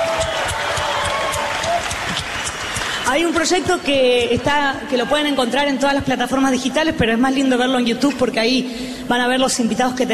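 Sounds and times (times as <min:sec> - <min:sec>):
audience applause: 0:00.0 - 0:03.7
speech: 0:03.1 - 0:10.1.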